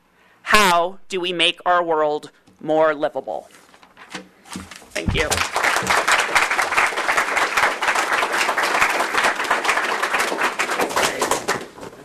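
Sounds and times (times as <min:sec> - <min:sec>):
speech: 0:00.7 - 0:03.6, 0:05.0 - 0:06.0
audience applause: 0:05.0 - 0:11.8.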